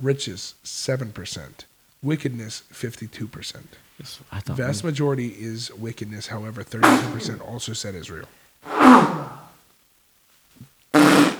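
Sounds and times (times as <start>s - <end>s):
speech: 0.0s - 9.3s
sneeze: 6.8s - 7.5s, 8.7s - 9.6s, 11.0s - 11.3s.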